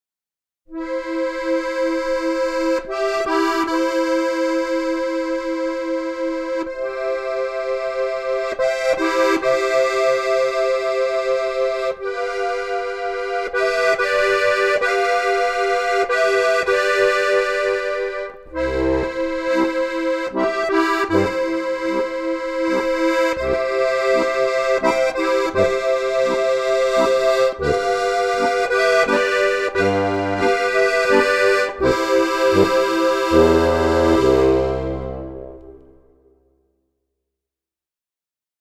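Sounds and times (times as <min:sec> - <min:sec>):
harmonica: 0:00.7 - 0:36.1.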